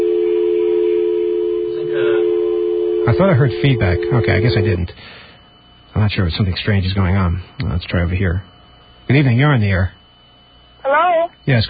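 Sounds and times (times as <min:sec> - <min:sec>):
telephone dial tone: 0:00.0 - 0:04.8
speech: 0:03.1 - 0:05.2, 0:06.0 - 0:08.5, 0:09.1 - 0:10.0, 0:10.8 - 0:11.6.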